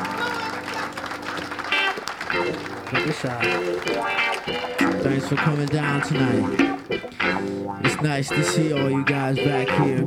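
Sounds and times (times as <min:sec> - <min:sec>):
crowd applauding and cheering at a live show at PJ's: 0:00.0 - 0:07.4
speech: 0:02.4 - 0:10.0.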